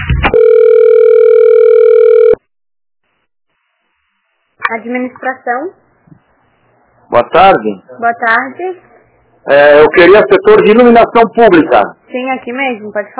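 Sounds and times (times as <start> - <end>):
telephone line tones while a call is transferred to another extension: 0.3 - 2.4
speech: 5.2 - 5.8, 7.1 - 8.9, 9.4 - 13.1.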